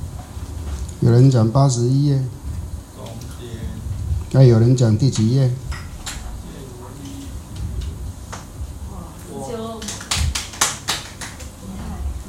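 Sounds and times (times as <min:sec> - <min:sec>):
speech: 0:01.0 - 0:02.4, 0:04.3 - 0:05.6
hands clapping: 0:05.2 - 0:06.3, 0:09.7 - 0:11.6.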